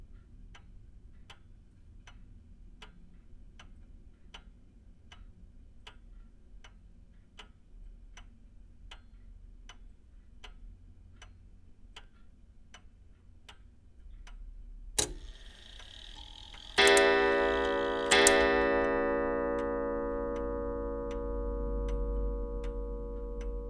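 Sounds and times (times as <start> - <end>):
antique clock: 15.0 - 23.6.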